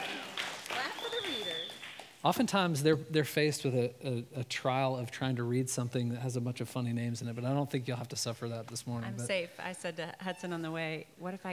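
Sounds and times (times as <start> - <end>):
audience clapping: 0.0 - 2.5
speech: 2.2 - 11.5.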